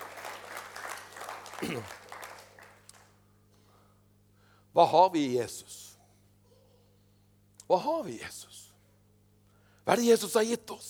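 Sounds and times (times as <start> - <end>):
applause: 0.0 - 3.2
speech: 1.6 - 2.0, 4.8 - 5.8, 7.7 - 8.6, 9.8 - 10.8.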